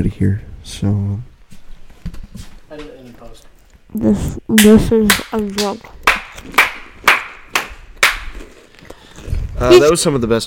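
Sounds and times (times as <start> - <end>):
speech: 0.0 - 1.3, 3.9 - 6.6, 9.6 - 10.4
hands clapping: 4.6 - 8.4.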